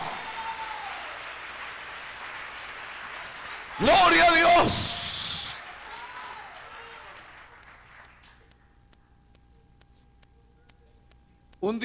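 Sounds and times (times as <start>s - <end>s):
audience applause: 0.0s - 8.4s
speech: 3.8s - 5.0s, 11.6s - 11.8s.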